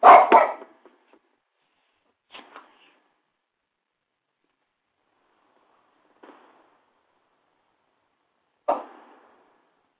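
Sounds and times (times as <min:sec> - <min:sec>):
dog barking: 0:00.0 - 0:00.7.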